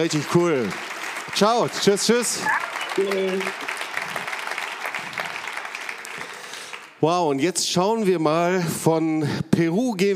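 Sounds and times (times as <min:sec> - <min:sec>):
speech: 0:00.0 - 0:03.6, 0:07.0 - 0:10.1
audience applause: 0:00.0 - 0:07.1.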